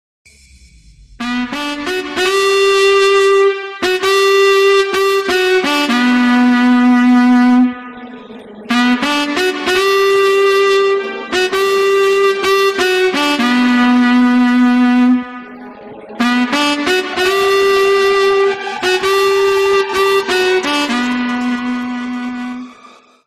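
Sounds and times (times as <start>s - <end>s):
music: 0.3s - 23.2s.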